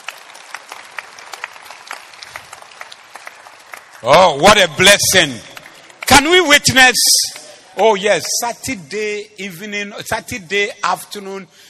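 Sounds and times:
audience clapping: 0.0 - 9.0
speech: 4.0 - 5.5, 6.1 - 11.6.

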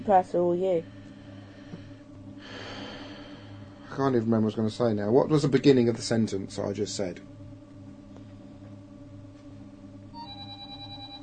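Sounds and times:
steady low hum: 0.0 - 11.2
speech: 0.1 - 1.0, 4.0 - 7.3
mobile phone ringing: 10.1 - 11.2.

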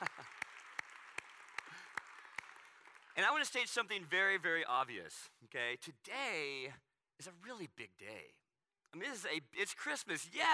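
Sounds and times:
audience clapping for the kids: 0.0 - 4.5
speech: 3.2 - 10.5.

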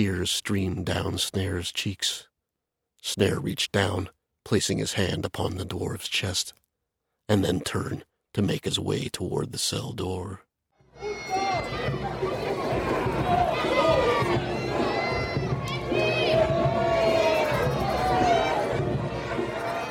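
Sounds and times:
speech: 0.0 - 2.3, 3.0 - 6.6, 7.3 - 11.2
rowdy crowd of revelers shouting and cheering at a street fair: 10.9 - 19.8.

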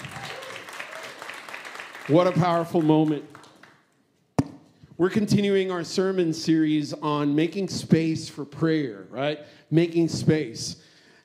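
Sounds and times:
crowd applause: 0.0 - 3.8
speech: 2.1 - 3.3, 5.0 - 10.9.

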